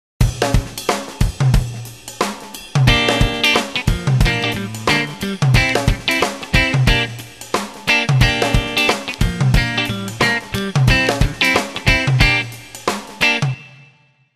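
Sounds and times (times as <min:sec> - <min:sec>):
rhythm guitar: 0:00.2 - 0:13.8.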